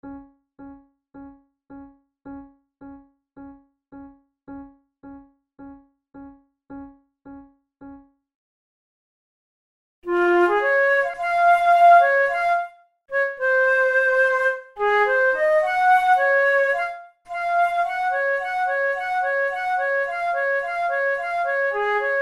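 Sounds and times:
flute method exercise: 0:10.0 - 0:22.1.

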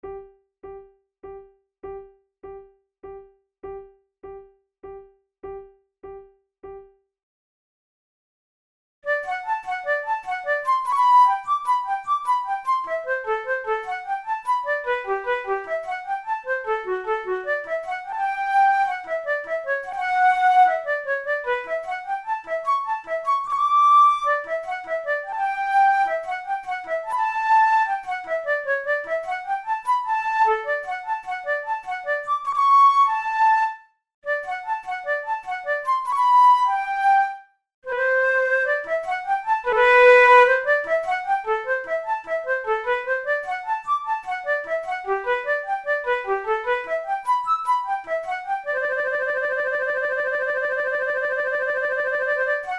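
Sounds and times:
flute in G major: 0:09.1 - 0:52.7.

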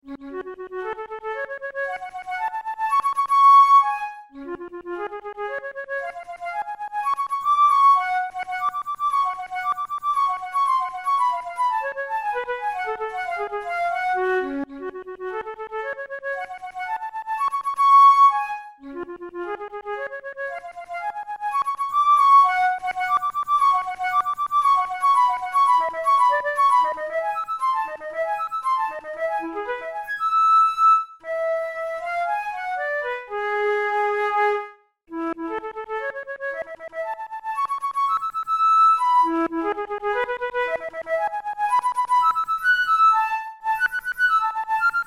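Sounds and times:
flute tunes playing melodic exercises: 0:00.3 - 0:45.0.

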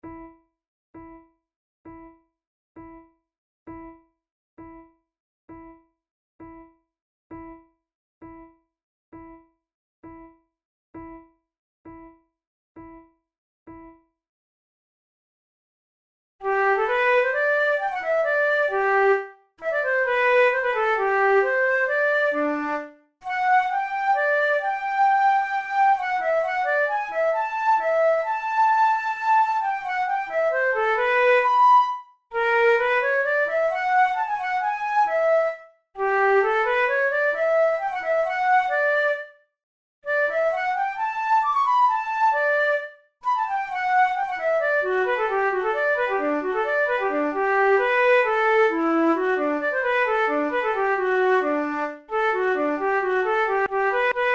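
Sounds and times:
two flutes playing a sonata andante in E minor: 0:16.4 - 0:39.2, 0:40.1 - 0:54.3.

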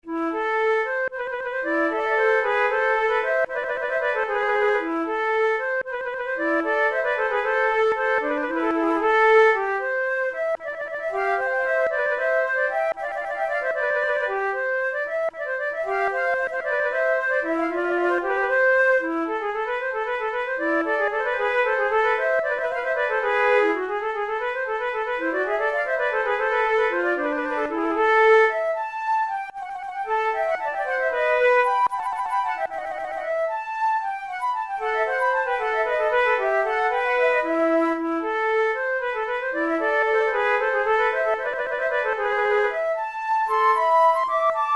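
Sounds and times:
two flutes playing: 0:00.0 - 0:44.7.

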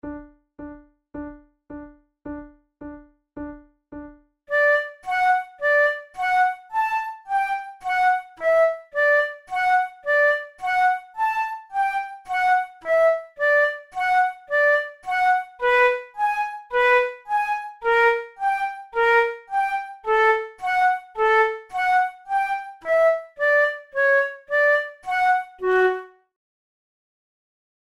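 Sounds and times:
flute method exercise: 0:04.5 - 0:26.2.

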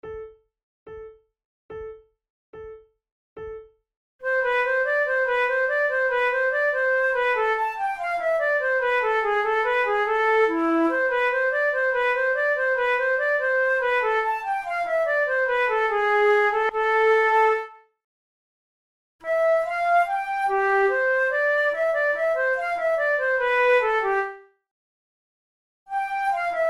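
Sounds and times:
flute playing a gavotte: 0:04.3 - 0:17.7, 0:19.2 - 0:24.4, 0:25.9 - 0:26.6.

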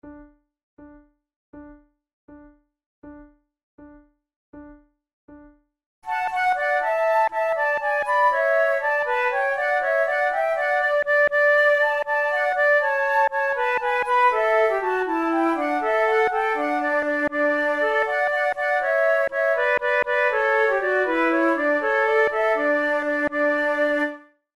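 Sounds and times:
musical trio: 0:06.1 - 0:24.2.

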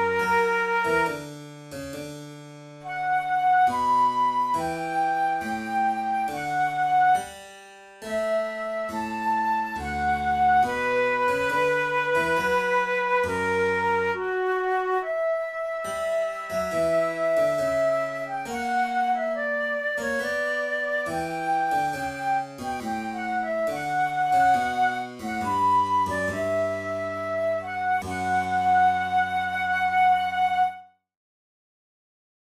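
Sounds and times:
flute sonata in B minor played slowly: 0:00.0 - 0:01.3, 0:02.8 - 0:07.4, 0:08.0 - 0:31.0.

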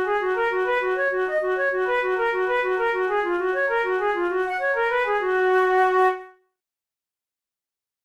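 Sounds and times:
flute study from a flute method: 0:00.0 - 0:06.4.

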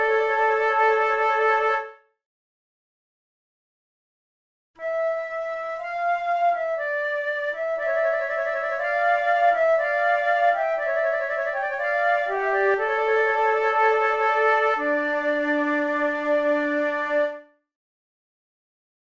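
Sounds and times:
slow trio sonata with flute: 0:00.0 - 0:01.9, 0:04.8 - 0:17.4.

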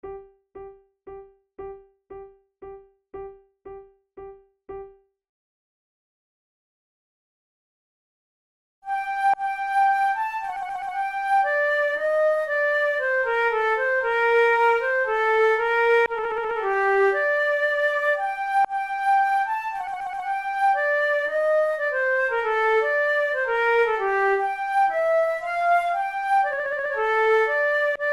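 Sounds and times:
two flutes playing an air: 0:08.9 - 0:28.1.

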